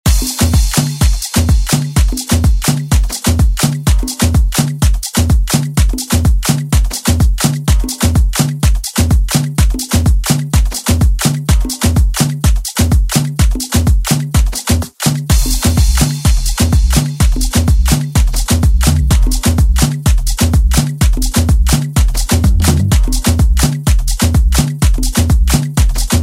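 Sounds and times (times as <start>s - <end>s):
afro house music: 0.0s - 26.2s.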